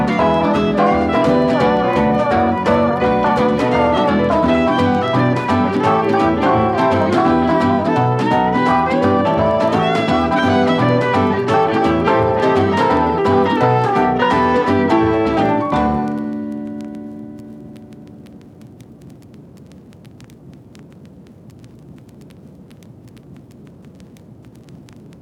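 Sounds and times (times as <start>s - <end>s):
party jazz loop: 0.0s - 18.4s.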